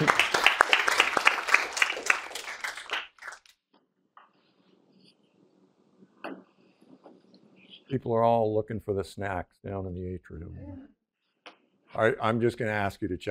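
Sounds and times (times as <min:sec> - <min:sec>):
audience applause: 0:00.0 - 0:03.5
speech: 0:07.9 - 0:11.0, 0:12.0 - 0:13.2.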